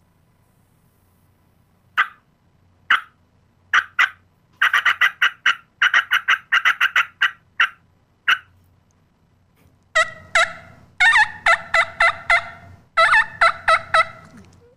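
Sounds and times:
cutting on a turkey call, staccato clucks: 2.0s - 2.3s, 2.9s - 8.6s, 9.9s - 14.7s.

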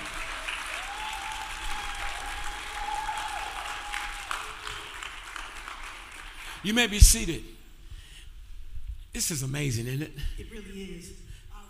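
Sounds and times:
audience applause: 0.0s - 7.0s
speech: 6.6s - 7.6s, 9.2s - 11.3s.

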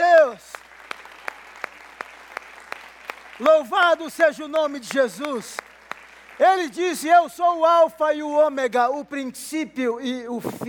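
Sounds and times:
audience clapping in unison: 0.0s - 7.4s
speech: 3.4s - 5.7s, 6.4s - 10.6s.

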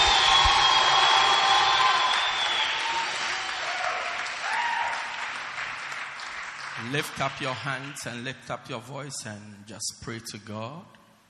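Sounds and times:
faint cheering: 0.0s - 5.2s
large crowd applauding: 0.0s - 8.2s
speech: 6.9s - 11.0s.

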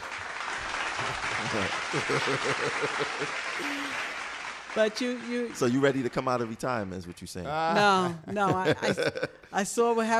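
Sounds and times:
applause: 0.0s - 7.3s
laughter: 1.0s - 4.1s, 7.8s - 9.5s
speech: 1.0s - 4.1s, 4.7s - 10.1s.

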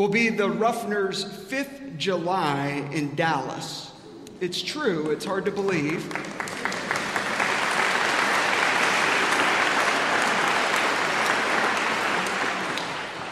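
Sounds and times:
speech: 0.0s - 6.6s
crowd applauding: 5.6s - 13.2s.

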